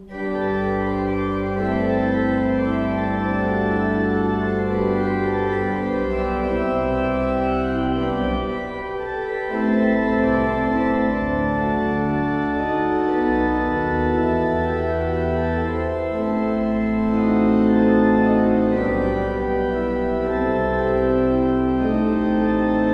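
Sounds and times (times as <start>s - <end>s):
used organ in Breil: 0.0s - 22.9s.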